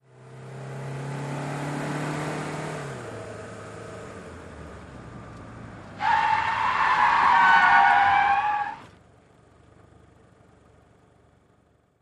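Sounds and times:
sedan skidding: 0:05.8 - 0:09.0.

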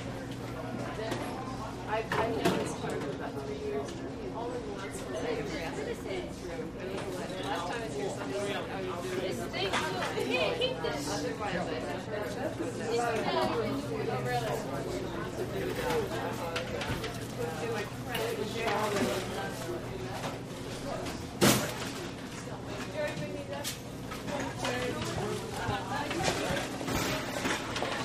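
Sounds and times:
grocery store ambience: 0:00.0 - 0:28.0.

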